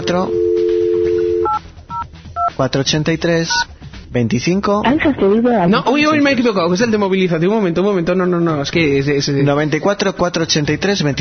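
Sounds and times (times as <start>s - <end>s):
telephone dial tone: 0.0s - 1.6s
two-note telephone keypad tones dialing a voicemail number: 0.0s - 2.0s
speech: 0.1s - 0.4s, 2.6s - 11.1s.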